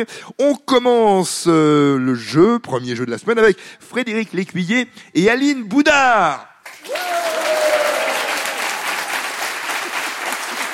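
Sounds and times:
speech: 0.0s - 7.0s
game-show audience applauding the contestants: 6.7s - 10.7s.

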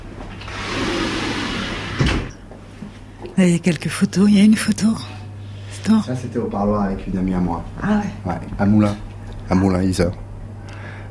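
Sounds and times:
window sliding shut with a thump: 0.4s - 2.3s
speech: 3.4s - 5.2s, 5.8s - 10.2s.

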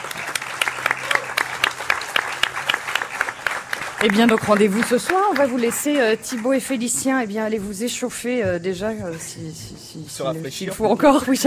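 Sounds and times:
audience applause: 0.0s - 7.0s
speech: 4.0s - 11.4s.

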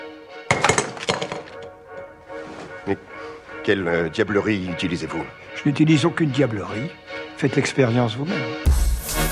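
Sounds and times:
faint music: 0.0s - 8.7s
paper ball and box of sand dropped onto the floor: 0.5s - 1.7s
speech: 2.9s - 9.2s.

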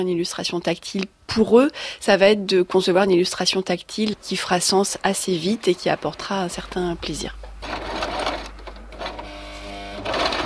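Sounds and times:
speech: 0.0s - 7.5s
sewing machine sewing figurines for tactile books in a workshop: 7.6s - 10.4s.

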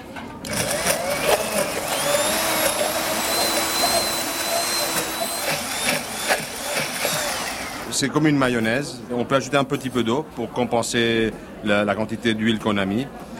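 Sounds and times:
electric blender mixing sauce: 0.5s - 7.9s
speech: 8.0s - 13.3s.

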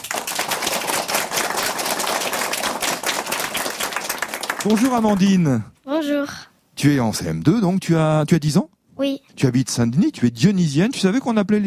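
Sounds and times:
audience applause: 0.0s - 5.3s
speech: 4.6s - 11.6s.

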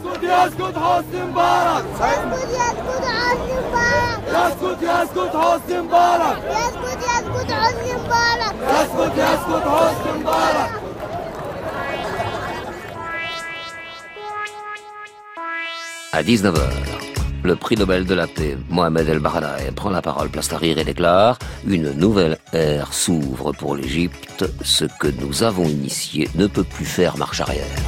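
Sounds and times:
speech: 0.0s - 10.9s, 16.2s - 27.8s
crowd chanting a protest slogan: 0.0s - 13.0s
high tone: 11.7s - 16.6s.

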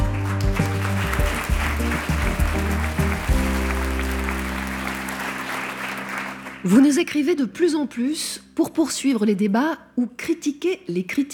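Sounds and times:
studio audience applauding: 0.0s - 7.3s
speech: 6.6s - 11.3s.

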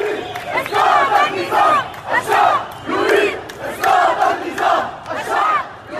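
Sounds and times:
large crowd of protesters in Beirut chanting the Arab Spring slogan: 0.0s - 5.9s.

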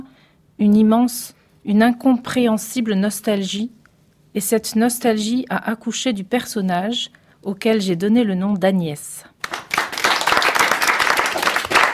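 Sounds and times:
speech: 0.6s - 3.8s, 4.4s - 9.3s
students applauding their teacher at the end of a class: 9.4s - 11.9s.

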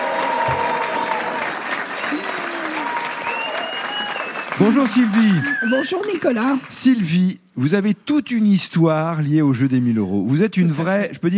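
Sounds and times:
audience applause in a cinema hall during a live quiz game recording: 0.0s - 6.9s
speech: 4.6s - 11.3s.

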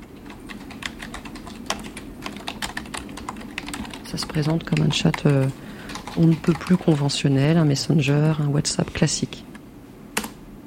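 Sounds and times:
typing on computer keyboards in office: 0.0s - 7.6s
low hum: 0.0s - 10.6s
speech: 4.1s - 5.6s, 6.2s - 9.5s.

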